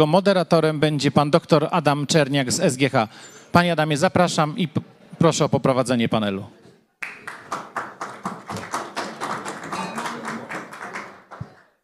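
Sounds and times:
speech: 0:00.0 - 0:07.2
audience applause: 0:07.0 - 0:11.8.

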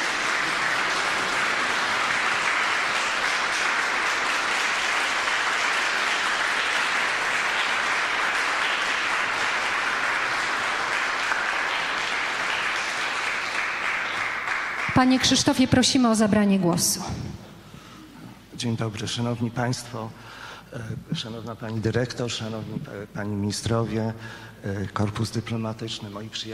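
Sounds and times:
audience applause: 0:00.0 - 0:15.6
speech: 0:15.0 - 0:17.3, 0:18.6 - 0:26.5.

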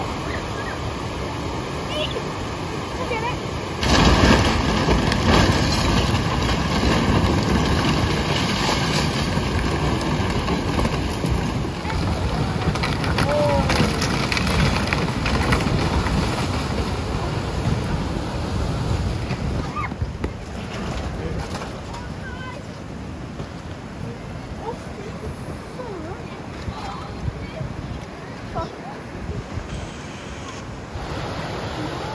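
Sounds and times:
floodwaters roaring: 0:00.0 - 0:32.1
sharp knocks and scraping: 0:03.8 - 0:22.7.

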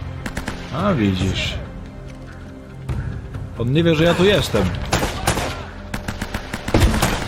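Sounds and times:
automatic weapon gunfire in a video game: 0:00.2 - 0:00.7, 0:04.9 - 0:07.2
speech: 0:00.7 - 0:01.6, 0:03.6 - 0:04.9.

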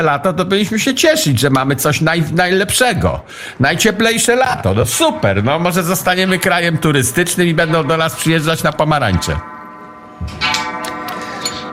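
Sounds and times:
speech: 0:00.0 - 0:09.6, 0:10.2 - 0:10.7
clock striking: 0:07.1 - 0:11.7.

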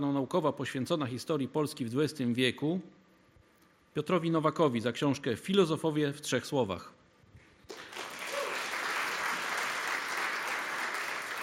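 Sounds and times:
speech: 0:00.0 - 0:03.0, 0:04.0 - 0:07.0
audience applause at a history book award ceremony: 0:07.7 - 0:11.4.

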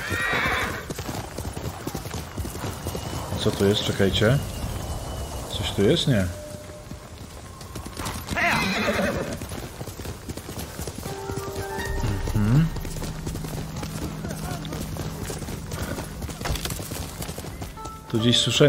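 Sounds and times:
horse neighing: 0:00.0 - 0:00.9, 0:08.4 - 0:09.4
horse hooves clopping: 0:00.0 - 0:18.6
speech: 0:03.4 - 0:04.6, 0:05.6 - 0:06.4, 0:18.2 - 0:18.6.

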